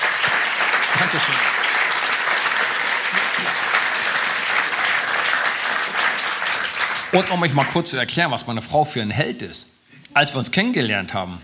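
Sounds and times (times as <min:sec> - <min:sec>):
audience applause: 0:00.0 - 0:07.9
speech: 0:01.0 - 0:01.6, 0:07.1 - 0:11.4.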